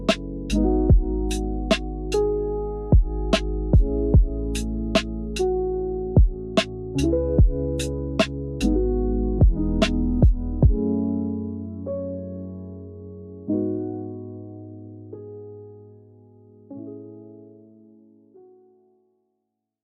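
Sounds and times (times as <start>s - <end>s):
lifestyle chillhop music: 0.0s - 12.4s.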